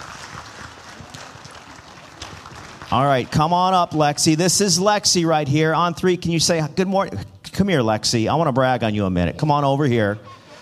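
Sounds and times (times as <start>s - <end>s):
audience clapping: 0.0s - 4.0s
speech: 2.9s - 10.4s.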